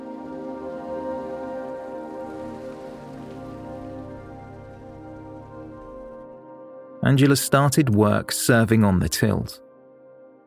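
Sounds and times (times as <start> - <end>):
heavy rain pouring: 0.0 - 6.3
speech: 7.0 - 9.6.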